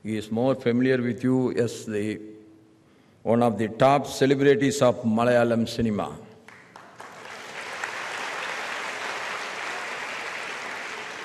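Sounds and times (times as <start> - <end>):
speech: 0.0 - 2.4, 3.2 - 6.3
audience clapping: 6.4 - 11.2.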